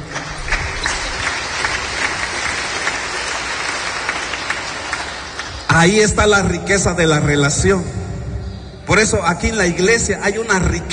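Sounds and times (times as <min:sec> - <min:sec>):
church audience clapping hands: 0:00.0 - 0:06.3
speech: 0:05.7 - 0:08.0, 0:08.9 - 0:10.9.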